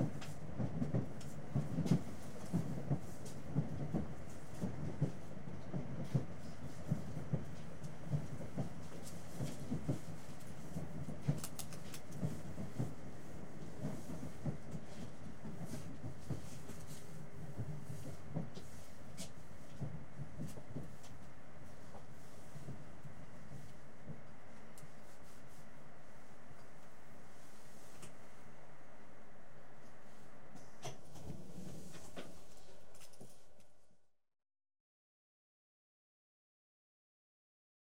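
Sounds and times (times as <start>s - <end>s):
train running and stopping in station, heard from interior: 0.0s - 28.4s.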